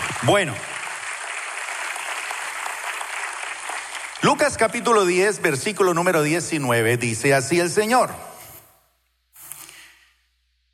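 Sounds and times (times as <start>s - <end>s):
audience applause: 0.0s - 5.2s
speech: 0.2s - 0.7s, 4.2s - 8.3s.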